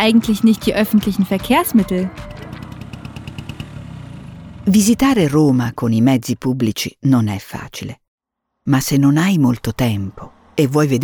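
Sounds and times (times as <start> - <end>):
speech: 0.0 - 2.4, 4.7 - 8.0, 8.7 - 11.0
Vespa motor scooter engine: 0.0 - 5.2, 9.6 - 11.0.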